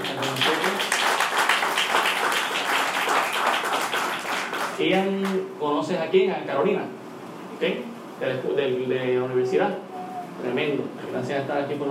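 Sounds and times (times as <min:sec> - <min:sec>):
audience applause: 0:00.0 - 0:04.8
speech: 0:04.8 - 0:07.0, 0:07.6 - 0:09.8, 0:10.4 - 0:11.8.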